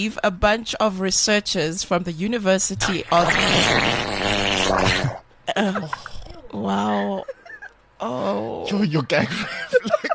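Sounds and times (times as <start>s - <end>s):
speech: 0.0s - 7.4s, 8.0s - 10.1s
diarrhea fart: 3.1s - 5.2s
laughter: 6.9s - 7.7s, 9.1s - 10.1s.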